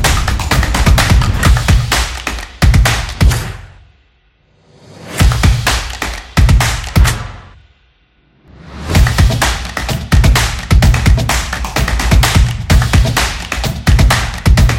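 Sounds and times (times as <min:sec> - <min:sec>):
action drums: 0:00.0 - 0:03.4, 0:05.2 - 0:07.2, 0:08.8 - 0:14.7.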